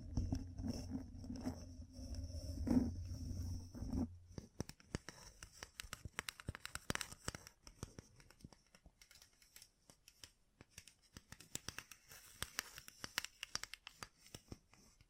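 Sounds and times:
low steady hum: 0:00.0 - 0:04.6
gem-covered fingertips tapping and scratching: 0:00.0 - 0:15.0.

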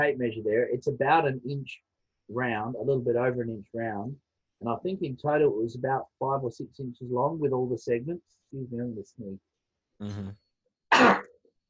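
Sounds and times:
speech: 0:00.0 - 0:10.4
sneeze: 0:10.9 - 0:11.4.

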